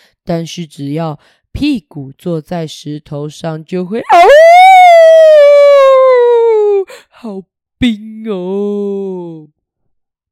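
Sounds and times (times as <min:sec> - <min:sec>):
speech: 0:00.3 - 0:04.5, 0:07.2 - 0:09.6
voice imitating a wolf howl: 0:04.1 - 0:06.9.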